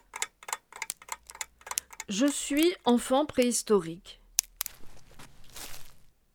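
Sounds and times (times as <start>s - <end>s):
speech: 2.1s - 4.2s
animal footsteps in dead leaves: 4.5s - 6.2s.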